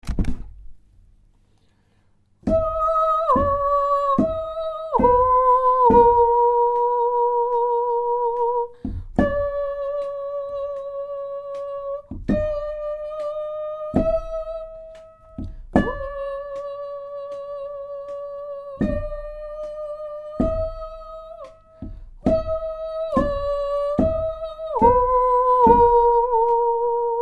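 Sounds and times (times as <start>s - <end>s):
soprano singing: 2.5s - 27.1s.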